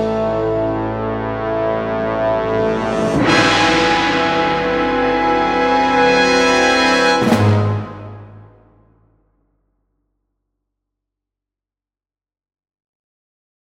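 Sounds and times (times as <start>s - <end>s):
brass: 0.0s - 9.2s.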